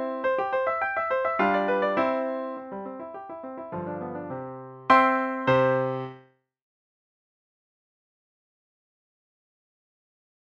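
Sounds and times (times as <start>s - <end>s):
piano sonata in C major: 0.0s - 6.3s.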